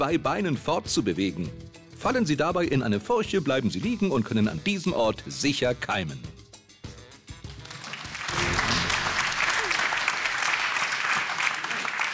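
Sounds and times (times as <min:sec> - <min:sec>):
speech: 0:00.0 - 0:06.4
audience clapping: 0:07.3 - 0:12.1.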